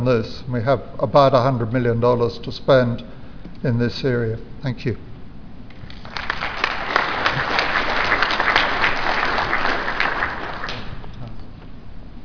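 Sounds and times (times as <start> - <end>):
speech: 0.0 - 5.1
audience applause: 5.9 - 11.1.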